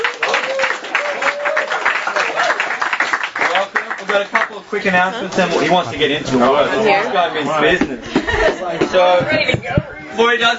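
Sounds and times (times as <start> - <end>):
audience applause: 0.0 - 5.0
laughter: 4.1 - 9.2
speech: 4.1 - 10.5.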